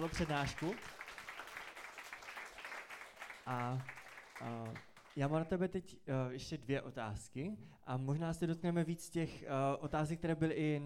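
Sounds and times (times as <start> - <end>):
speech: 0.0 - 1.0, 3.4 - 10.8
audience applause: 0.0 - 5.1.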